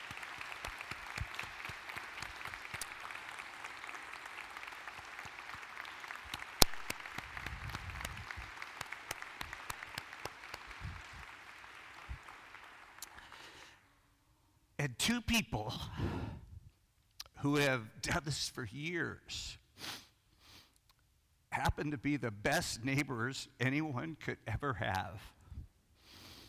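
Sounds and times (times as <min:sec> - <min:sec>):
audience clapping: 0:00.0 - 0:13.8
speech: 0:14.8 - 0:16.4, 0:17.4 - 0:20.0, 0:21.7 - 0:25.4.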